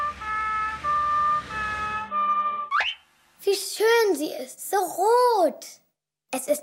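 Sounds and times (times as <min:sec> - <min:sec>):
road rumble: 0:00.0 - 0:02.7
fire engine two-tone siren passing by: 0:00.0 - 0:03.0
speech: 0:03.5 - 0:06.6.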